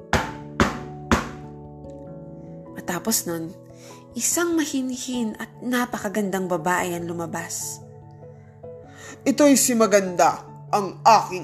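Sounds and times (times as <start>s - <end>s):
hollow knocks on bamboo: 0.1s - 1.5s
speech: 2.9s - 7.8s, 9.2s - 11.4s.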